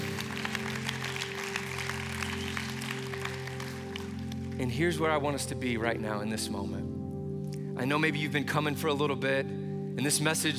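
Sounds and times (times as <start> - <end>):
audience clapping: 0.0 - 4.7
speech: 4.6 - 6.9, 7.8 - 10.5.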